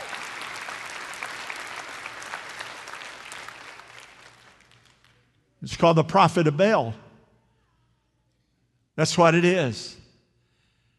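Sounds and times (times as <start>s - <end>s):
audience clapping: 0.0s - 5.3s
speech: 5.6s - 7.0s, 9.0s - 10.0s.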